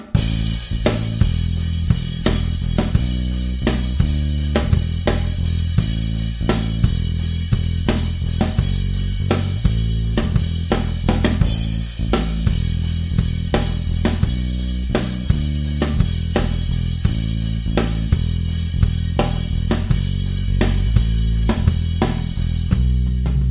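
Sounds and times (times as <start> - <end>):
modern rock music: 0.2 - 23.3.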